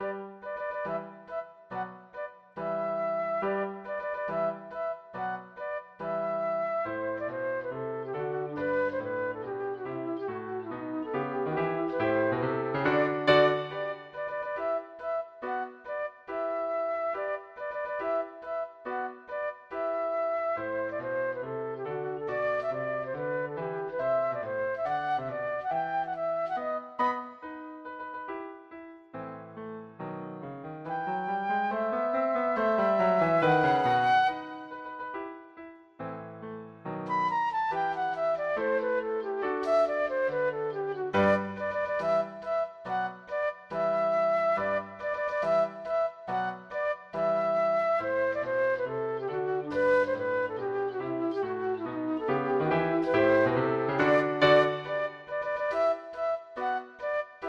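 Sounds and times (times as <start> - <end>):
flute piece: 0.0 - 28.4, 30.0 - 57.4.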